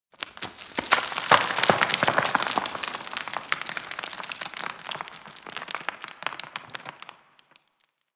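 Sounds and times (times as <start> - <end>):
mining rock debris falling: 0.1 - 8.0.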